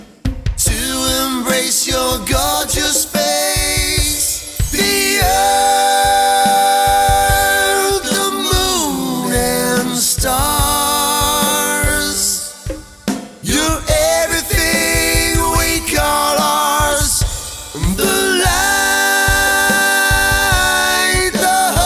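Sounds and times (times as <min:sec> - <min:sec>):
ambient vocals: 0:00.6 - 0:21.8.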